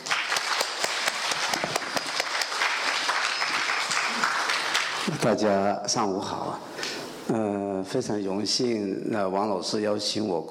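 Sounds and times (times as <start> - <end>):
warm audience applause: 0.0 - 5.3
speech: 5.2 - 6.7, 7.3 - 10.4.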